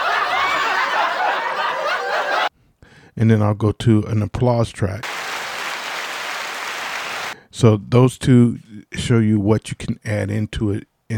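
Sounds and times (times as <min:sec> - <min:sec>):
laugh track sample: 0:00.0 - 0:02.5
speech: 0:03.2 - 0:05.1, 0:07.6 - 0:11.1.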